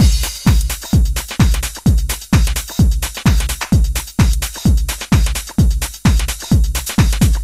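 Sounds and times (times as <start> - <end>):
drum loop: 0.0 - 7.4.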